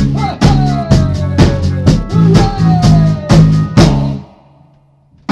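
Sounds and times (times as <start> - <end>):
gangster rap with singing: 0.1 - 4.3.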